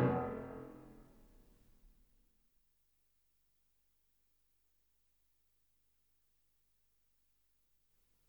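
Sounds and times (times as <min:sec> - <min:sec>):
piano piece: 0:00.0 - 0:00.8.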